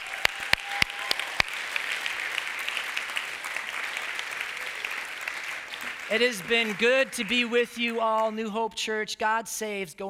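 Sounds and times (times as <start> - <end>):
audience applause: 0.0 - 7.9
speech: 6.1 - 10.0.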